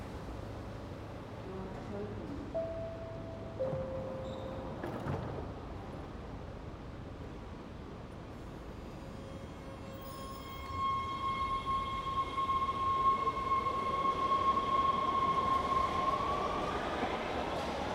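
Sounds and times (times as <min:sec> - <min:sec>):
indoor subway station ambience in Washington DC: 0:00.0 - 0:17.9.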